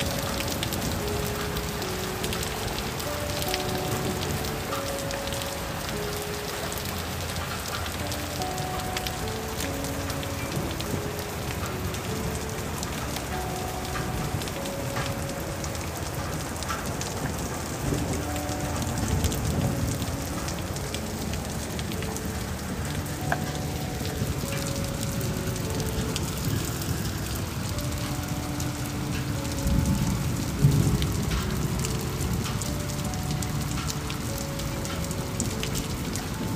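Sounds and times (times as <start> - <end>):
real rain falling: 0.0 - 36.5.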